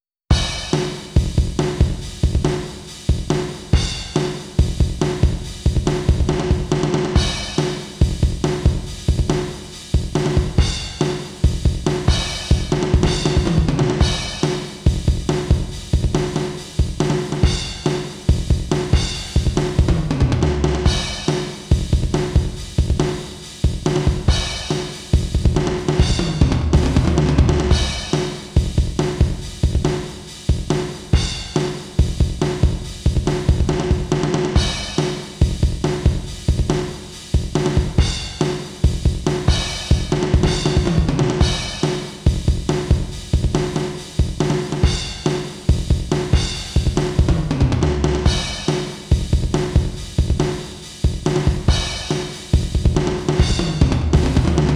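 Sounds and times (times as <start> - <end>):
eight-beat drum pattern: 0.3 - 54.7.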